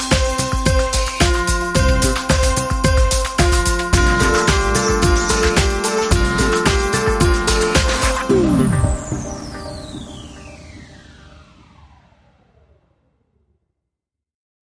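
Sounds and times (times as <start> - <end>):
funky Christmas music: 0.0 - 9.8.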